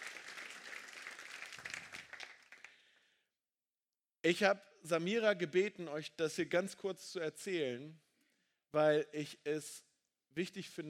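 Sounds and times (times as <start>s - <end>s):
audience applause: 0.0s - 2.8s
speech: 4.2s - 8.0s, 8.7s - 10.8s.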